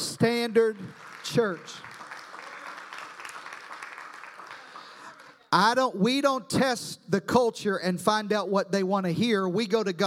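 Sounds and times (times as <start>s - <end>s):
speech: 0.2s - 1.9s, 5.5s - 10.0s
audience applause: 0.3s - 5.4s.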